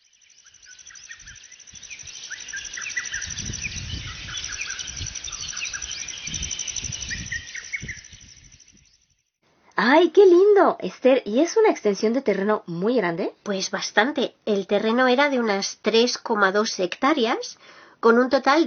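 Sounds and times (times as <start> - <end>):
insects singing: 0.0 - 9.1
birds trilling: 0.4 - 9.0
speech: 9.8 - 18.6.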